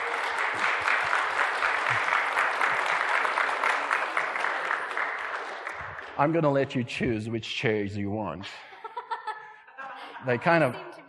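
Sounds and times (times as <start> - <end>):
audience applauding: 0.0 - 6.7
speech: 6.2 - 8.6, 10.2 - 10.9
laughter: 8.4 - 10.8.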